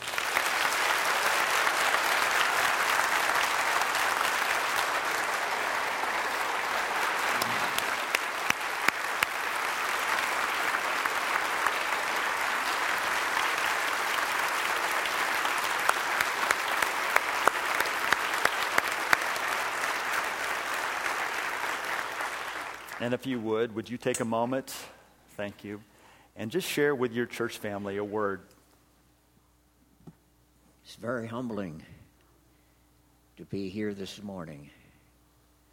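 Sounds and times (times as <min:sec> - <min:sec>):
audience applause: 0:00.0 - 0:23.1
speech: 0:23.0 - 0:28.5, 0:31.0 - 0:32.0, 0:33.5 - 0:34.8.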